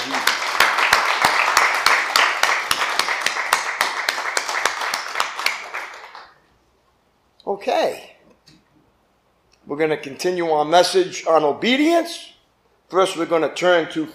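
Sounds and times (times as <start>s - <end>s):
audience applause: 0.0s - 6.4s
speech: 7.6s - 8.1s, 9.7s - 14.1s.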